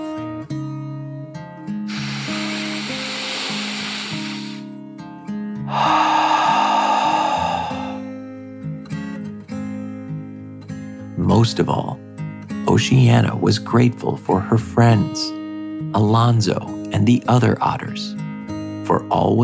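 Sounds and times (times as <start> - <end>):
deep breath in and out: 1.9 - 4.7, 5.6 - 8.2
speech: 11.4 - 12.0, 12.7 - 18.2, 18.9 - 19.4.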